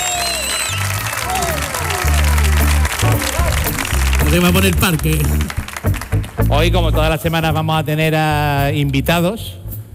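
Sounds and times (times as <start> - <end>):
studio audience at a live comedy show applauding and cheering: 0.0 - 7.0
speech: 4.3 - 5.6, 6.4 - 9.6.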